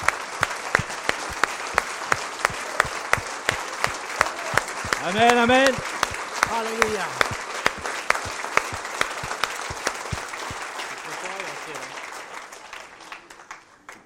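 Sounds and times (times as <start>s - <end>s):
audience applauding: 0.0s - 14.0s
speech: 5.0s - 5.9s, 6.6s - 7.3s.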